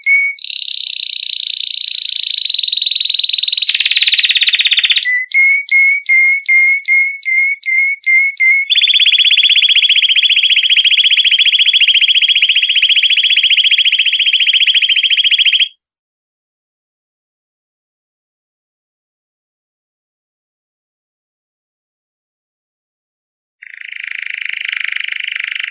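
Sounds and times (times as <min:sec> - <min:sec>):
canary song with whistled notes and rapid rolling trill: 0:00.0 - 0:15.8, 0:23.6 - 0:25.6.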